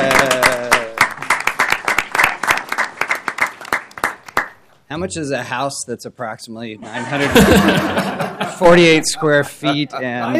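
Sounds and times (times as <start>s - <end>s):
laughter: 0.0s - 0.9s, 6.8s - 10.3s
round of applause: 0.0s - 4.6s
speech: 5.0s - 10.3s.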